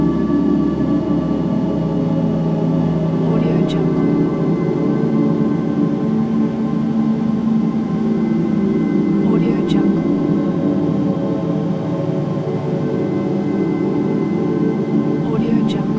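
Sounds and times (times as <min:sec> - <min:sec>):
dark ambient soundscape: 0:00.0 - 0:15.9.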